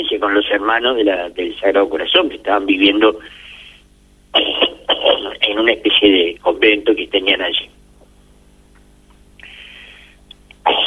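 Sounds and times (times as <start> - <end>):
speech: 0.0 - 3.5, 4.3 - 7.8
person coughing: 4.4 - 5.2, 10.7 - 10.8.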